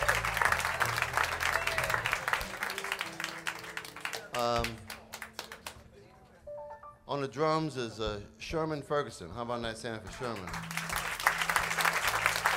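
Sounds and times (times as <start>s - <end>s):
audience applause at live jazz club: 0.0s - 5.8s, 10.2s - 12.5s
speech: 7.1s - 10.8s.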